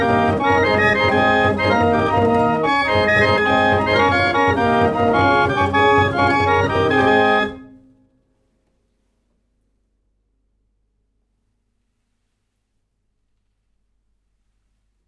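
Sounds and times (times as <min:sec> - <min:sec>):
16-note salon barrel organ with 3 cylinders from 1810 England: 0:00.0 - 0:07.9.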